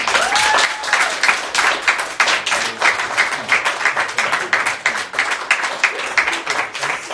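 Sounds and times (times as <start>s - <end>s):
applause: 0.0s - 7.1s.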